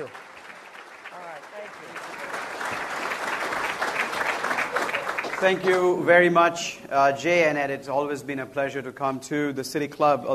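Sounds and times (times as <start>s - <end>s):
audience applause at a City Club event welcoming a speaker: 0.0s - 6.0s
speech: 5.4s - 10.3s.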